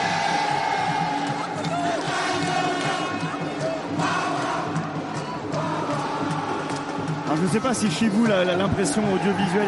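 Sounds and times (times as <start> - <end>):
stadium crowd chanting during a sports match: 0.0 - 7.3
speech: 7.5 - 9.6.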